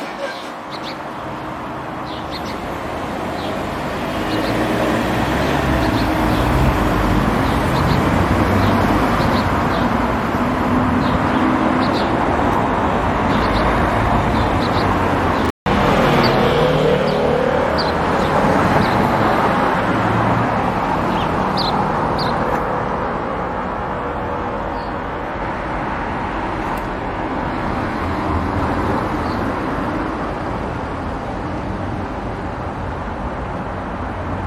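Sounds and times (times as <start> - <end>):
steady dense traffic rumble: 0.0 - 34.4
sparrows chirping: 0.3 - 1.2, 1.8 - 12.3, 13.2 - 19.6, 20.9 - 22.6, 24.6 - 25.1.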